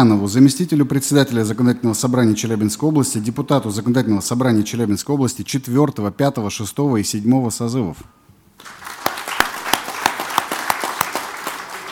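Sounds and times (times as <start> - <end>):
speech: 0.0 - 8.8
audience applause: 8.6 - 11.8.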